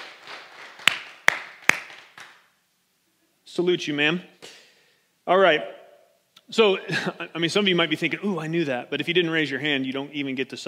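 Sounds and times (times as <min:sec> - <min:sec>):
group clapping: 0:00.0 - 0:02.4
speech: 0:03.6 - 0:04.4, 0:05.3 - 0:05.8, 0:06.5 - 0:10.6.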